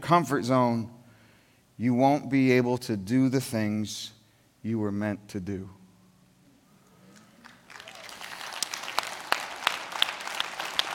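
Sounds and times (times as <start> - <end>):
speech: 0.1 - 1.0, 1.8 - 5.8
audience applause: 7.2 - 10.9.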